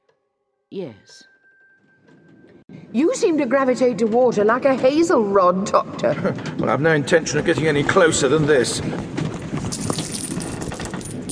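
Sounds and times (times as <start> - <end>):
speech: 0.7 - 1.3, 2.9 - 9.2
gold coins cascading and clinking: 9.6 - 11.2.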